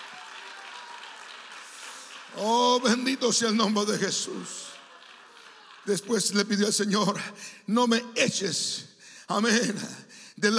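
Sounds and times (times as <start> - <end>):
audience applause: 0.0 - 7.2
speech: 2.3 - 4.6, 5.8 - 10.5.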